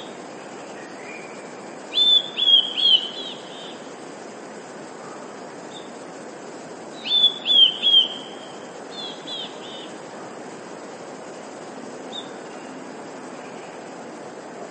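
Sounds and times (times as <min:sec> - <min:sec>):
Eurasian blue tit song: 0:01.1 - 0:03.8, 0:07.0 - 0:09.9.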